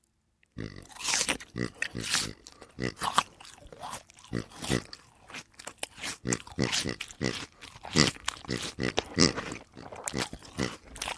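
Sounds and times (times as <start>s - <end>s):
pig eating with wet crunching and chewing: 0.6s - 11.1s.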